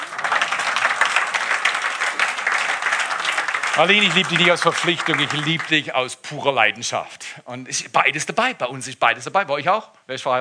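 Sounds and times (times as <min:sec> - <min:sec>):
audience clapping: 0:00.0 - 0:06.2
speech: 0:03.8 - 0:10.4.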